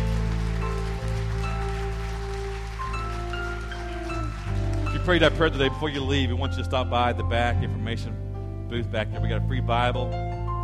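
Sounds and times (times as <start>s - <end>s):
audience applause, hand clapping: 0.0s - 6.0s
speech: 5.1s - 10.6s.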